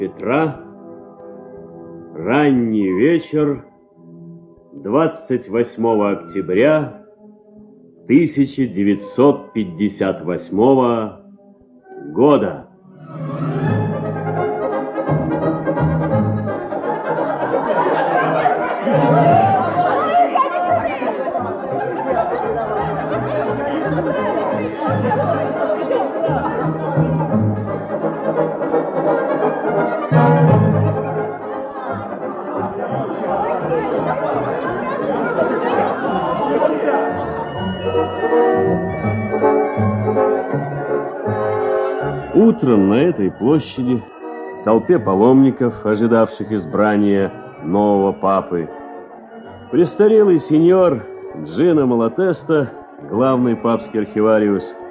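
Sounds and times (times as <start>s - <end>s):
speech: 0.0s - 0.6s, 2.2s - 3.7s, 4.8s - 7.0s, 8.1s - 11.2s, 12.0s - 12.7s, 42.6s - 48.8s, 49.7s - 54.8s
evening crowd chatter in a public square: 13.2s - 42.4s
scattered laughter: 15.7s - 30.3s, 31.4s - 37.4s.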